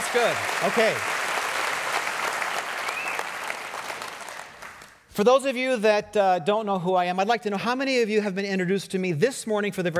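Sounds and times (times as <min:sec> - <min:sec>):
whoop or cheer: 0:00.0 - 0:04.6
crowd applause: 0:00.0 - 0:05.0
speech: 0:00.1 - 0:01.2, 0:05.2 - 0:09.9.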